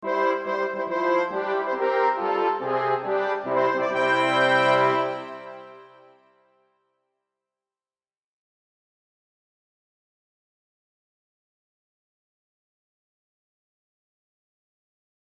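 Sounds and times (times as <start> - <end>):
fanfare: 0.0 - 6.2.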